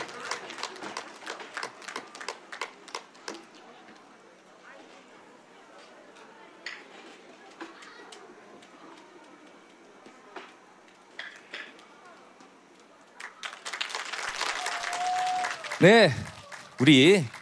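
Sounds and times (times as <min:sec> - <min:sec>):
audience applause: 0:00.0 - 0:03.5, 0:13.1 - 0:17.4
speech: 0:15.8 - 0:17.4.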